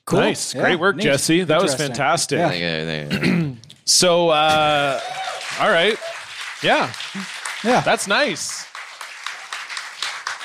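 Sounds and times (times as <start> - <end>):
speech: 0.1 - 8.7
audience clapping: 4.4 - 10.4.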